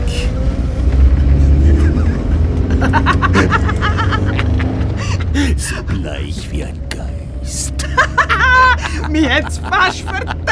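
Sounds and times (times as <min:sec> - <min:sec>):
car engine accelerating as the vehicle pulls away: 0:00.0 - 0:10.5
laughter: 0:01.6 - 0:05.6, 0:07.6 - 0:10.5
speech: 0:06.3 - 0:07.0, 0:09.1 - 0:10.4.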